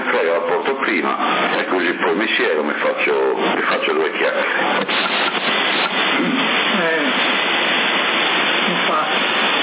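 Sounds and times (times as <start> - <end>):
speech: 0.8 - 5.2
rain falling: 4.5 - 9.6.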